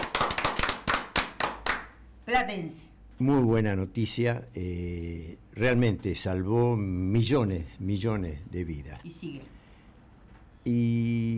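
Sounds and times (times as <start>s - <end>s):
applause: 0.0s - 2.0s
speech: 2.3s - 9.6s, 10.6s - 11.3s.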